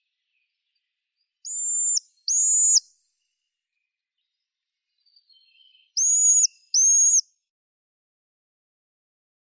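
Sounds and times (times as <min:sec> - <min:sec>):
Eurasian pygmy owl Glaucidium passerinum calling: 0:01.5 - 0:02.9, 0:06.0 - 0:07.2.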